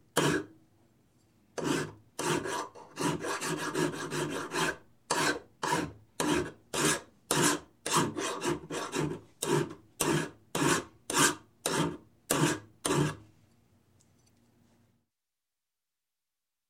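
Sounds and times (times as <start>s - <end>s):
file filing metal in construction: 0.2s - 0.5s, 1.6s - 13.2s.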